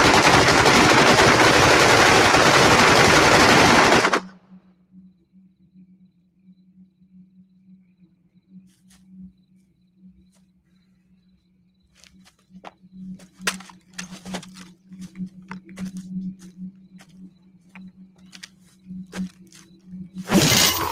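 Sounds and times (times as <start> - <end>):
gunfire opened on command: 0.0 - 4.4
faint low hum: 4.3 - 20.9.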